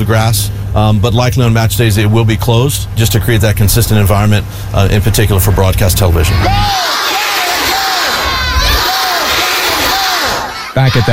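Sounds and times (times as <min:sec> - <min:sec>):
speech: 0:00.0 - 0:07.3, 0:10.8 - 0:11.1
schoolchildren cheering: 0:06.2 - 0:11.1.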